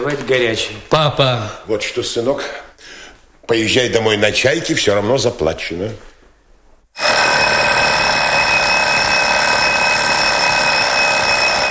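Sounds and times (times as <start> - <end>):
speech: 0.0 - 6.1
alarm clock ringing: 7.0 - 11.6.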